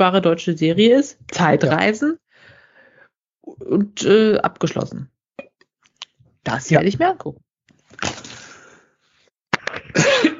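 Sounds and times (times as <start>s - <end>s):
speech: 0.0s - 2.2s, 3.5s - 5.1s, 6.4s - 7.4s, 9.9s - 10.3s
person coughing after swallowing the wrong way: 9.9s - 10.3s.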